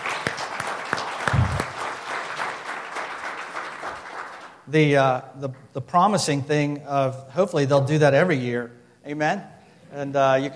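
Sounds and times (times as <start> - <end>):
audience applause: 0.0 - 4.6
speech: 4.7 - 10.5.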